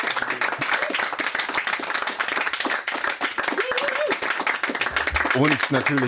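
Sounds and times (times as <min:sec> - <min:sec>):
studio audience applause: 0:00.0 - 0:06.0
speech: 0:05.4 - 0:06.0.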